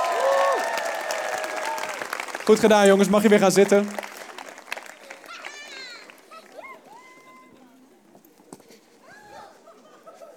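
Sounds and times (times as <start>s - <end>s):
audience applause: 0.0s - 7.4s
speech: 2.5s - 4.0s
laughter: 9.2s - 10.3s.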